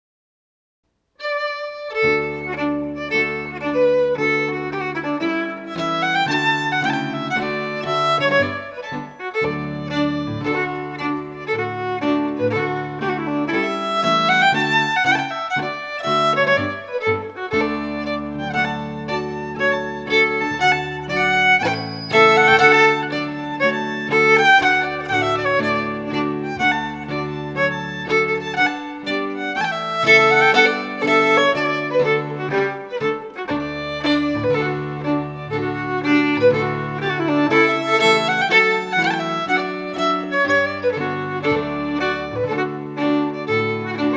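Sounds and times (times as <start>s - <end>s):
Scottish fiddling of a strathspey: 1.2s - 44.1s.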